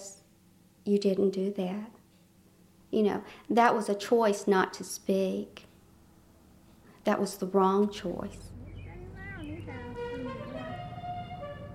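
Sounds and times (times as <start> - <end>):
speech: 0.8 - 2.0, 2.9 - 5.7, 7.0 - 8.5
musical car horn playing a tune: 9.2 - 11.7.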